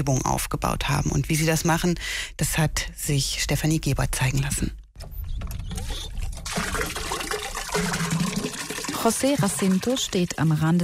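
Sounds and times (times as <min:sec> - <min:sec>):
speech: 0:00.0 - 0:04.8, 0:09.0 - 0:10.8
hand pump filling a bucket with water: 0:05.6 - 0:10.7.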